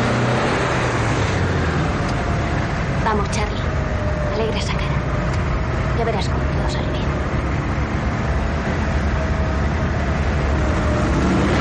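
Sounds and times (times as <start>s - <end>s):
car driving: 0.0s - 11.6s.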